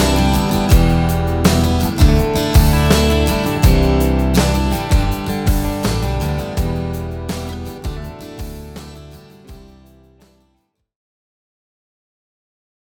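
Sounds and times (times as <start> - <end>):
drum groove: 0.0 - 10.0.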